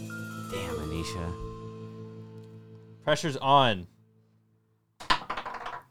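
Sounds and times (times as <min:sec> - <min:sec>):
speech: 0:01.0 - 0:01.5, 0:03.1 - 0:04.0
thirty-sided die rolling off table: 0:05.0 - 0:05.9.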